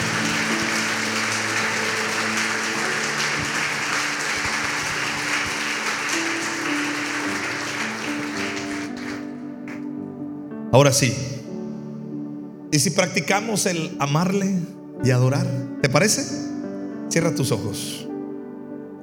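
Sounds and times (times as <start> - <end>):
audience applauding: 0.0 - 9.9
speech: 10.7 - 11.4, 12.8 - 16.4, 17.1 - 18.0.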